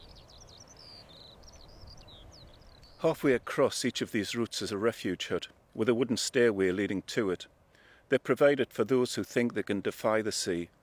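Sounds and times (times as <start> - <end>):
birds on the Farne Islands including skylarks chirping and trilling: 0.0 - 5.5
steady low hiss: 0.0 - 10.8
speech: 3.0 - 10.8.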